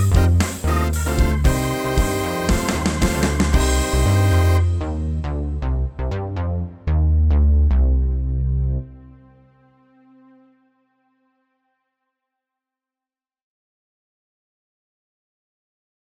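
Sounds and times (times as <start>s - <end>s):
MIDI ditty: 0.0s - 9.3s.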